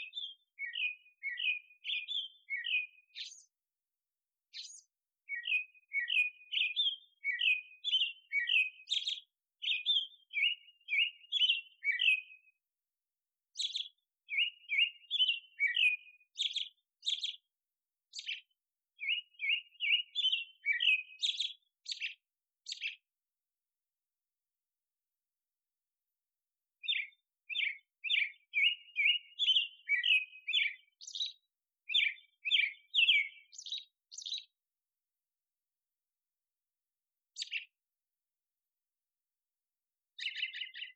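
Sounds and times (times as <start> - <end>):
birds: 0.0 - 3.6, 4.5 - 12.6, 13.5 - 17.5, 18.1 - 23.0, 26.8 - 34.6, 37.4 - 37.8, 40.2 - 40.9.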